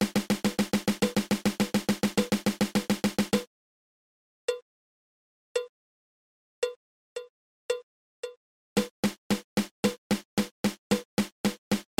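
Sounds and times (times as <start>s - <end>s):
drum single-stroke roll: 0.0s - 3.5s, 8.8s - 11.9s.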